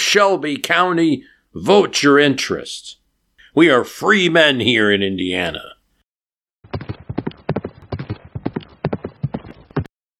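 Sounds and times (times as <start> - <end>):
speech: 0.1 - 3.0, 3.6 - 5.7
horse hooves clip-clopping: 6.7 - 9.9.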